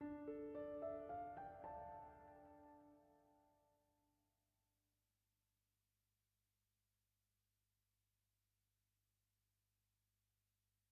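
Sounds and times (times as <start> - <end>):
piano: 0.0 - 3.7.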